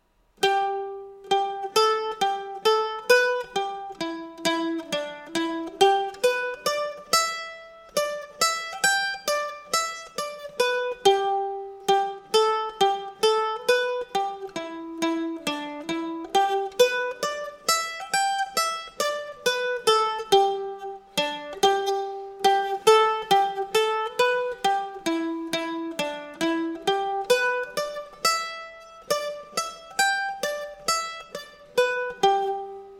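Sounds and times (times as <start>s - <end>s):
slow banjo: 0.0s - 32.9s.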